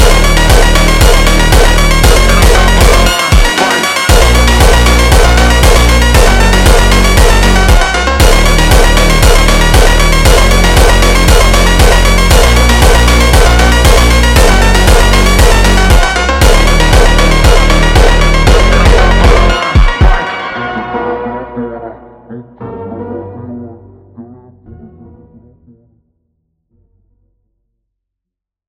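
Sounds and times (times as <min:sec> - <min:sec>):
slowed funk jumpstyle music: 0:00.0 - 0:21.6.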